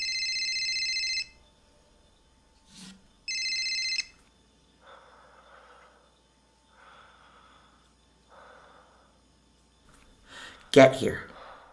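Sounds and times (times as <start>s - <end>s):
phone ringing with unfamiliar electronic trilling ringtone: 0.0s - 1.4s, 3.3s - 4.2s
speech: 10.8s - 11.3s.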